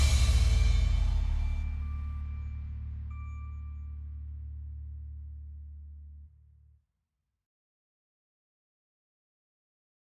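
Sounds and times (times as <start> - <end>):
deep bass: 0.0 - 6.7.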